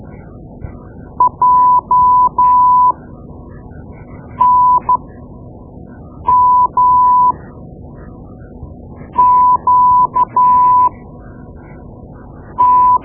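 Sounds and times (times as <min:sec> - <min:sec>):
morse code: 0:01.2 - 0:02.9, 0:04.4 - 0:05.0, 0:06.3 - 0:07.4, 0:09.2 - 0:10.9, 0:12.6 - 0:13.0.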